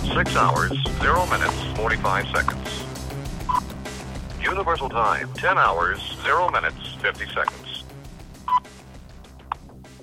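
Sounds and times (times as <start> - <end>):
speech: 0.2 - 2.9, 4.4 - 7.6
time signal tone over a telephone line: 8.5 - 8.7.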